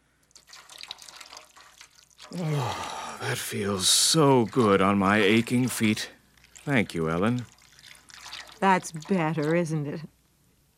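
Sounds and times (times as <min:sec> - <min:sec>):
hot water running from a tap: 0:00.4 - 0:10.1
speech: 0:02.3 - 0:07.5, 0:08.6 - 0:10.2.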